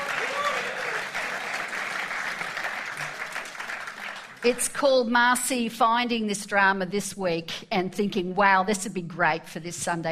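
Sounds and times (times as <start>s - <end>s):
audience applauding: 0.0s - 4.4s
speech: 4.4s - 10.1s.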